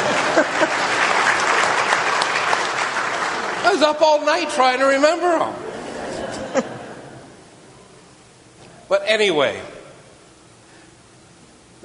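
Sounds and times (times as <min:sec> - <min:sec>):
laughter: 0:00.0 - 0:01.4, 0:05.6 - 0:07.4
audience applause: 0:00.0 - 0:04.5
speech: 0:03.7 - 0:05.7, 0:06.5 - 0:06.7, 0:08.9 - 0:09.7.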